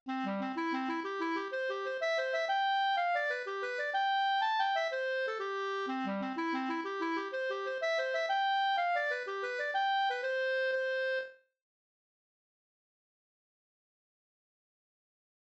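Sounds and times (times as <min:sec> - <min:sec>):
hambo polska folk dance tune: 0:00.1 - 0:11.4.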